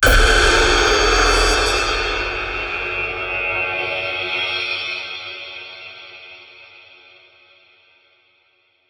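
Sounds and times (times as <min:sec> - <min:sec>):
rising tension build: 0:00.0 - 0:04.4
impact hit: 0:00.0 - 0:04.9.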